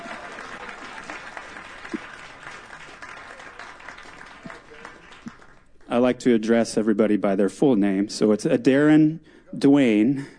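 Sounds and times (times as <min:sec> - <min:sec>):
audience applause: 0:00.0 - 0:05.7
speech: 0:05.9 - 0:10.3.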